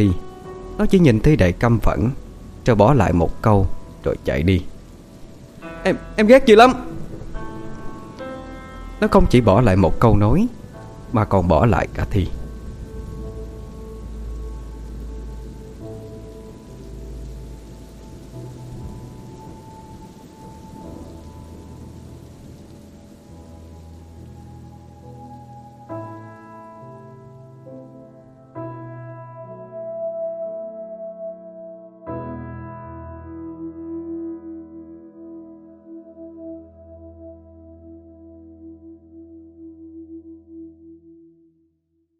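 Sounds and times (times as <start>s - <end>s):
speech: 0.0s - 4.7s, 5.8s - 6.9s, 9.0s - 12.4s
rain falling: 0.0s - 29.8s.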